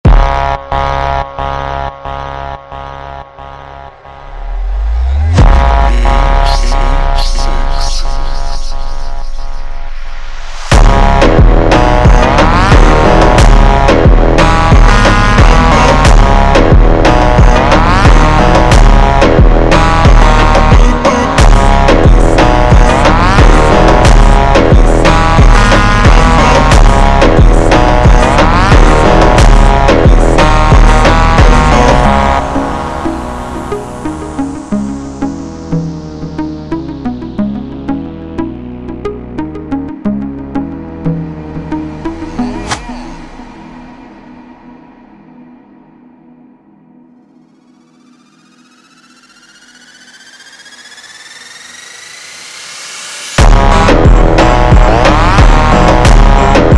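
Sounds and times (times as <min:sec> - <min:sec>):
super slowed instrumental music: 0:00.0 - 0:50.7, 0:52.4 - 0:56.7.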